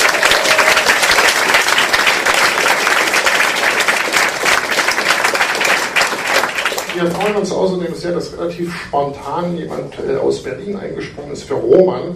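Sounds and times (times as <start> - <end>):
audience applause: 0.0 - 7.5
speech: 7.0 - 12.1.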